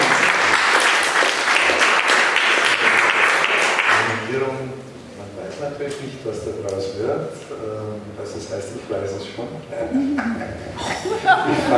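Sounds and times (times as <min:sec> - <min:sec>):
audience applause: 0:00.0 - 0:04.2
speech: 0:05.9 - 0:11.7
laughter: 0:09.8 - 0:11.7.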